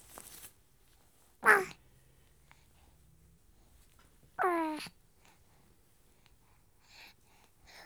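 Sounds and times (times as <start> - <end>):
week-old baby boy making happy sounds: 1.4 - 1.8, 4.4 - 4.9.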